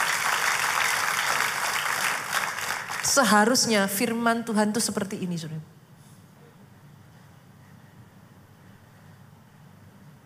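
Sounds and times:
audience applause: 0.0 - 3.3
speech: 3.1 - 5.8.

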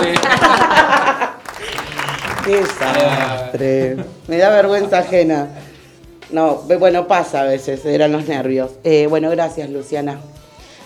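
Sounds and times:
background applause: 0.0 - 4.3
laughter: 0.0 - 5.8
speech: 2.5 - 5.6, 6.3 - 10.4.

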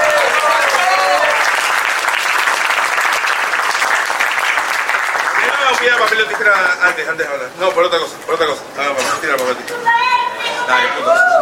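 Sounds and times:
loud applause: 0.0 - 7.1
speech: 6.4 - 11.4.

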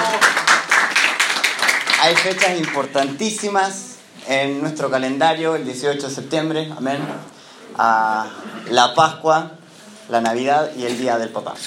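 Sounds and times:
audience applause: 0.0 - 2.9
speech: 2.0 - 11.6.

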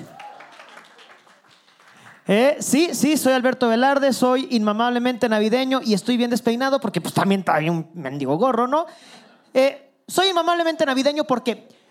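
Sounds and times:
audience applause: 0.0 - 2.2
speech: 2.3 - 11.8.

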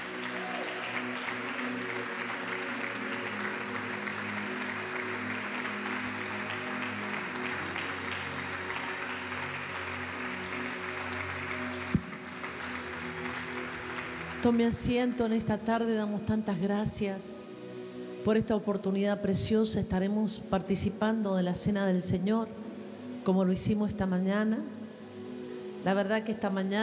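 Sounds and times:
audience applauding: 0.0 - 14.8
speech: 14.4 - 17.3, 18.2 - 22.6, 23.2 - 24.8, 25.8 - 26.8.

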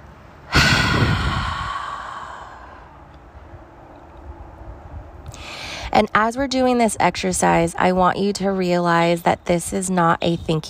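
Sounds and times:
deep breath out during a guided breathing exercise: 0.5 - 3.1, 5.3 - 5.9
speech: 5.9 - 10.6.

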